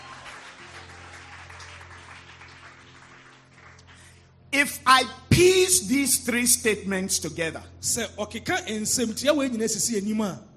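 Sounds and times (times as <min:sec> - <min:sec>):
audience clapping hands: 0:00.0 - 0:04.3
speech: 0:04.6 - 0:10.5.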